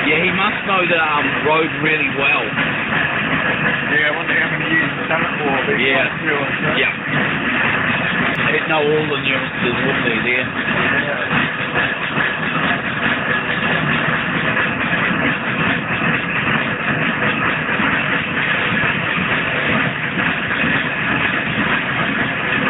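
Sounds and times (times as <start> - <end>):
traction engine running on the road: 0.0 - 22.6
speech: 0.1 - 11.5.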